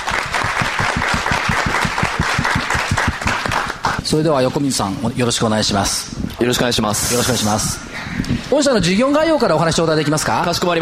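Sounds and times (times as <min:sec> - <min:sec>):
crowd applauding welcoming a speaker: 0:00.0 - 0:04.0
speech: 0:04.1 - 0:10.8.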